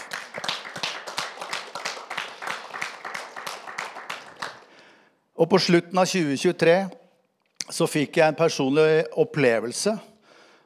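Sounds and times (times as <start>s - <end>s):
applause: 0.0s - 5.0s
speech: 5.4s - 7.0s, 7.7s - 10.1s.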